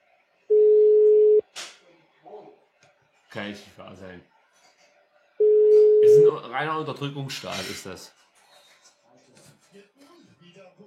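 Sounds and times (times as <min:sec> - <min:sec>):
telephone ringing unanswered: 0:00.5 - 0:01.4
speech: 0:03.3 - 0:04.4, 0:06.0 - 0:08.2.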